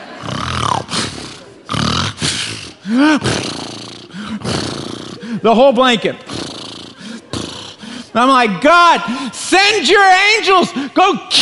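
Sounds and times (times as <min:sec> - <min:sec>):
person imitating loud snoring: 0:00.0 - 0:05.4, 0:06.2 - 0:08.1
speech: 0:02.9 - 0:03.6, 0:05.3 - 0:06.3, 0:08.2 - 0:11.3.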